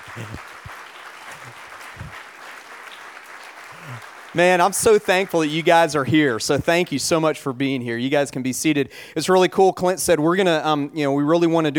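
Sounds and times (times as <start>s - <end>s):
audience applause: 0.0s - 6.3s
speech: 0.2s - 0.5s, 4.3s - 11.7s.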